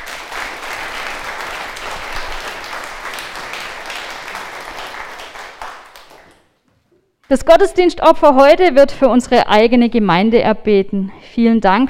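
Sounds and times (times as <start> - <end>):
audience applause: 0.0 - 6.5
speech: 7.3 - 11.8.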